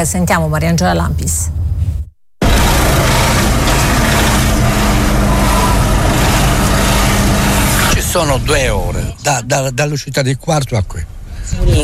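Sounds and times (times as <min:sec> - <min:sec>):
speech: 0:00.0 - 0:01.6, 0:08.2 - 0:11.8
long queues of car traffic on the coastal road: 0:02.4 - 0:11.3.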